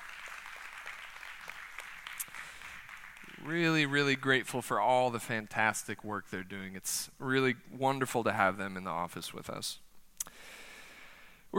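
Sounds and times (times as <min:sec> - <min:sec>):
audience applause: 0:00.0 - 0:03.9
speech: 0:03.4 - 0:09.8.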